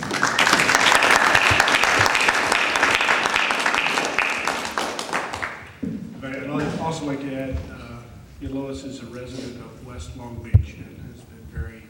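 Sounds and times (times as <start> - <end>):
audience applause: 0.0 - 5.8
speech: 7.0 - 7.8, 8.4 - 11.8.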